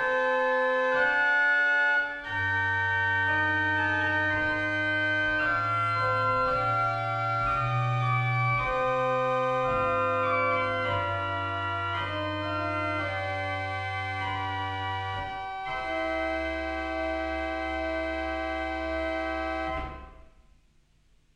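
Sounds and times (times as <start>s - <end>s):
pipe organ: 0.0s - 20.3s.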